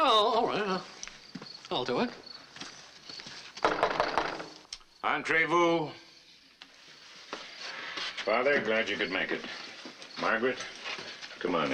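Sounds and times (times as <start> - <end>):
speech: 0.4 - 1.0, 1.7 - 2.7, 5.2 - 6.0, 8.2 - 9.6, 10.2 - 10.8, 11.4 - 11.7
knocking on a door: 3.6 - 4.6.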